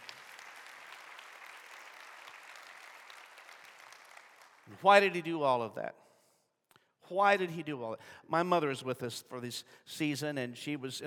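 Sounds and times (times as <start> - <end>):
audience clapping in praise: 0.0 - 4.8
speech: 4.7 - 6.0, 7.1 - 11.0.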